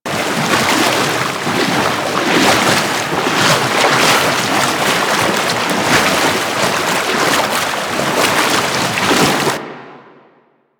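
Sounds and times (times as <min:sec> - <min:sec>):
knee sliding through water: 0:00.0 - 0:09.6.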